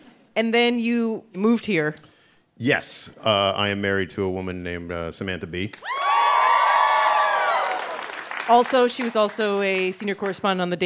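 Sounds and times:
speech: 0.4 - 6.0, 8.5 - 10.8
studio audience cheering and whooping: 5.8 - 8.4
studio audience applause: 5.8 - 10.4.

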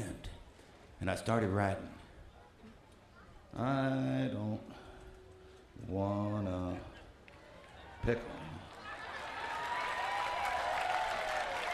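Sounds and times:
speech: 1.0 - 2.0, 3.6 - 4.8, 5.8 - 6.9, 8.0 - 8.7
audience clapping: 8.7 - 11.7.

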